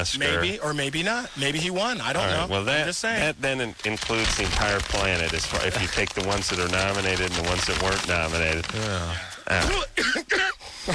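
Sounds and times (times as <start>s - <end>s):
speech: 0.0s - 10.9s
person coughing on a late-night radio call-in show: 9.7s - 10.9s
throat clearing: 9.7s - 10.9s.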